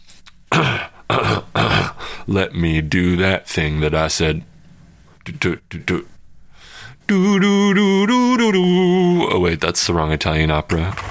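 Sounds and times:
throat clearing: 0:00.5 - 0:02.1
speech: 0:02.3 - 0:04.5, 0:05.3 - 0:06.1, 0:07.1 - 0:11.0.

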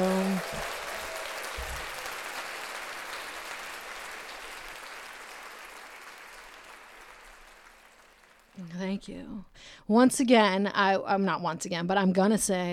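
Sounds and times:
audience applause: 0:00.0 - 0:08.6
speech: 0:09.0 - 0:12.7.

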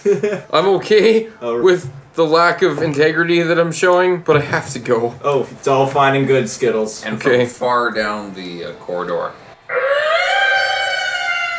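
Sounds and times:
speech: 0:00.0 - 0:09.8
screeching sound like nails on chalkboard: 0:09.7 - 0:11.5.

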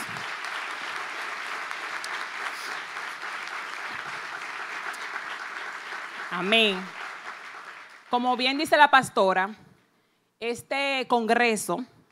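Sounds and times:
audience applause: 0:00.0 - 0:08.2
speech: 0:06.3 - 0:07.0, 0:08.1 - 0:09.6, 0:10.4 - 0:12.0.

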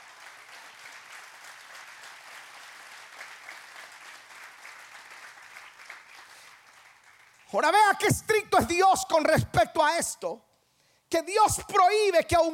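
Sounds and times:
audience applauding: 0:00.0 - 0:08.0
speech: 0:07.5 - 0:10.5, 0:11.1 - 0:12.5.

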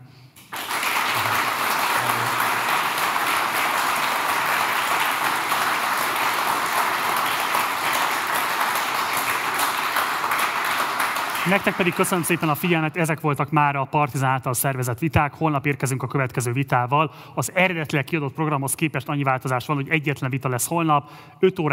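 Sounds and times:
sustained applause from a large audience: 0:00.4 - 0:12.8
speech: 0:11.5 - 0:21.7.

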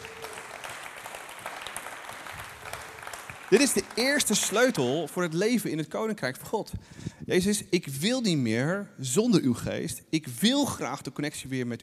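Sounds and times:
audience applause: 0:00.0 - 0:05.2
speech: 0:03.5 - 0:11.8.

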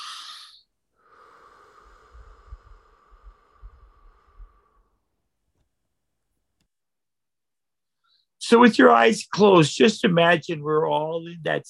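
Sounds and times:
slow deep breath in and out during a guided breathing exercise: 0:00.0 - 0:05.2
speech: 0:08.5 - 0:11.6.

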